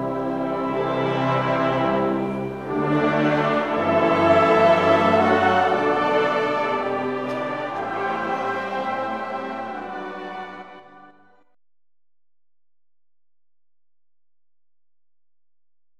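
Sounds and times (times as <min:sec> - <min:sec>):
hymn: 0:00.0 - 0:11.4.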